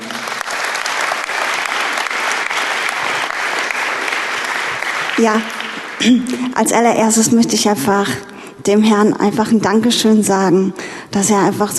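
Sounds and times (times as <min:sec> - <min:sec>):
applause: 0:00.0 - 0:06.4
speech: 0:05.2 - 0:11.7.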